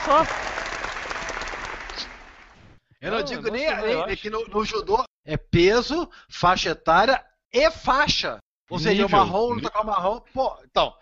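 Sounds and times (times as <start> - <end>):
audience applause: 0.0 - 2.6
speech: 0.1 - 0.5, 3.0 - 11.0.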